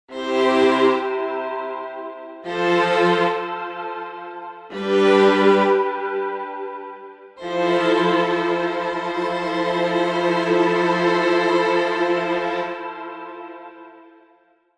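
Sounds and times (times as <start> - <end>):
small ensemble strings violas long notes: 0.1 - 14.1.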